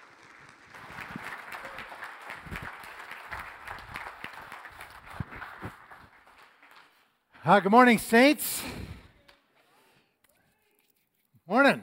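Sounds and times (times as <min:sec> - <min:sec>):
congregation applauding a preacher: 0:00.0 - 0:07.2
speech: 0:07.5 - 0:08.8.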